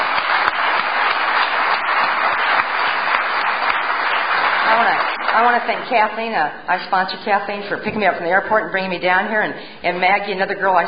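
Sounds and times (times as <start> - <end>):
audience applause: 0.0 - 5.9
speech: 5.4 - 10.8.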